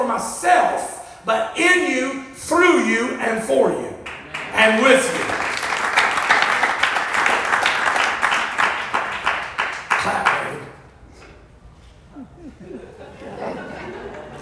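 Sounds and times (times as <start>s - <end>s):
speech: 0.1s - 3.9s, 4.5s - 5.4s
audience clapping: 4.0s - 10.7s
laughter: 12.1s - 14.4s.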